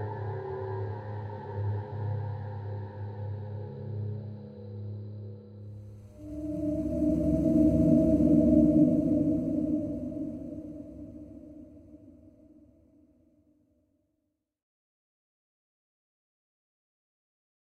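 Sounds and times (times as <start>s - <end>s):
dark water: 0.0s - 12.6s.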